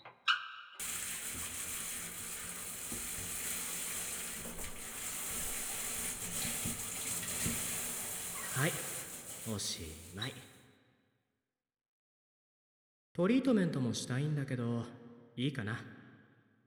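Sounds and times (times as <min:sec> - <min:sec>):
water rinsing shampoo out of hair: 0:00.8 - 0:10.5
speech: 0:08.6 - 0:08.9, 0:09.5 - 0:10.5, 0:13.2 - 0:16.0.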